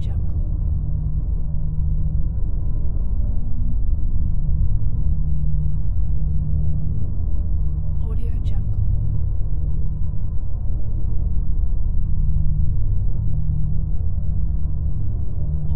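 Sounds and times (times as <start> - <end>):
drone ambience: 0.0 - 15.7.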